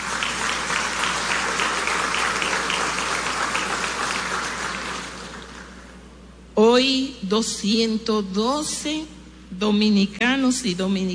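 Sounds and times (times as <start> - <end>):
audience applause at graduation ceremony: 0.0 - 5.9
speech: 6.8 - 11.1.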